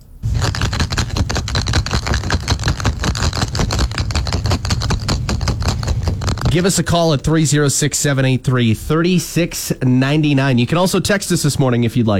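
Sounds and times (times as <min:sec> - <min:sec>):
hard objects rattling in a container, possibly golf balls shaken: 0:00.0 - 0:06.9
speech: 0:06.5 - 0:12.1.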